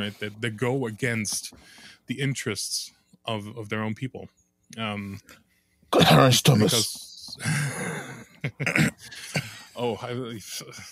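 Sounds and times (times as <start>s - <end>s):
speech: 0.0s - 10.9s
person coughing: 6.0s - 6.8s, 7.4s - 9.6s.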